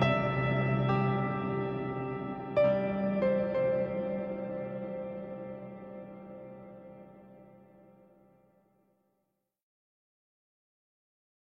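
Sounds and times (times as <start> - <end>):
instrumental music: 0.0 - 8.1.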